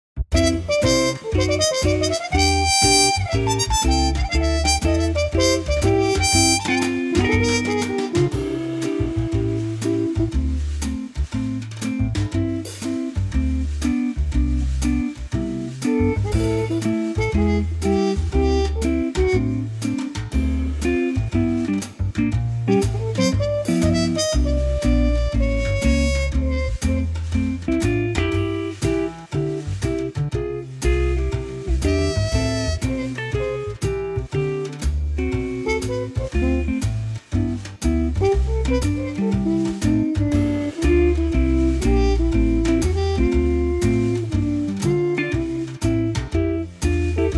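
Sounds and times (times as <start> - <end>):
swing music in C: 0.1 - 47.3.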